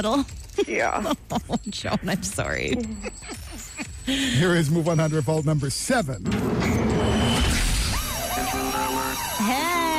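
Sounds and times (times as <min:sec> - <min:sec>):
speech: 0:00.0 - 0:06.7
game show alarm: 0:06.3 - 0:09.9.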